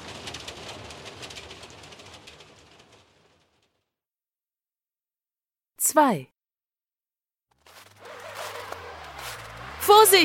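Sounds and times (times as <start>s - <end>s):
hail falling: 0.0s - 3.7s
speech: 5.9s - 6.3s, 9.8s - 10.2s.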